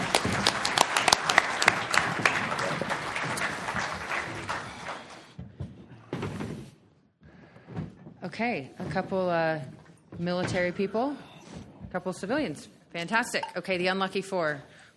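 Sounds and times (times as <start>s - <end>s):
audience applause: 0.0s - 5.4s
speech: 8.4s - 11.3s, 11.9s - 14.9s.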